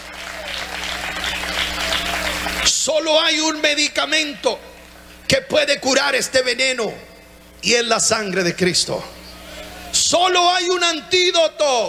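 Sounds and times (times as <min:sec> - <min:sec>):
congregation applauding in church: 0:00.0 - 0:03.3
speech: 0:02.6 - 0:04.7, 0:05.3 - 0:09.2, 0:10.0 - 0:11.8.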